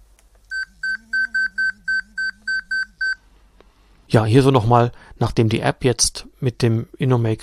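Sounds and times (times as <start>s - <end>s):
electronic obstacle-warning alert beeps: 0.5s - 3.2s
speech: 4.1s - 7.4s.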